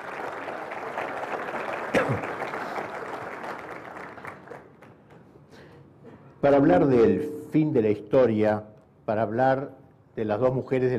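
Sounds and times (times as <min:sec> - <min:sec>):
audience applause: 0:00.0 - 0:05.0
speech: 0:06.4 - 0:10.9.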